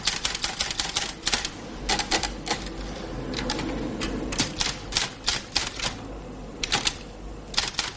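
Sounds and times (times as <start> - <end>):
official typing a report on a typewriter: 0.0 - 2.7, 3.4 - 6.0, 6.6 - 7.9.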